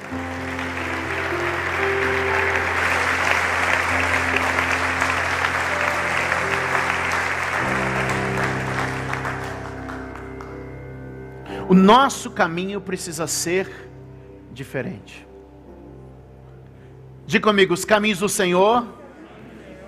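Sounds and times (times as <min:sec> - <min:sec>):
audience applauding: 0:00.0 - 0:10.7
speech: 0:11.7 - 0:13.9, 0:14.6 - 0:15.3, 0:17.3 - 0:19.0.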